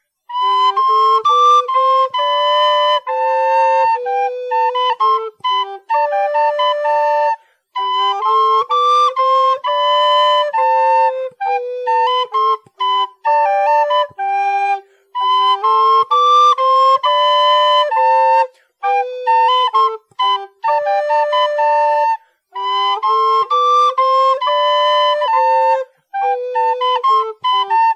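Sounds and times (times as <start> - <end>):
gavotte: 0.0 - 27.9.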